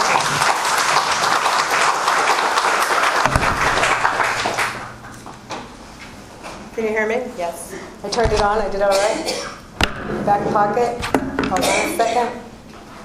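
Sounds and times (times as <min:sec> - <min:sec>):
audience applause: 0:00.0 - 0:05.4
speech: 0:06.8 - 0:09.6, 0:10.3 - 0:12.4.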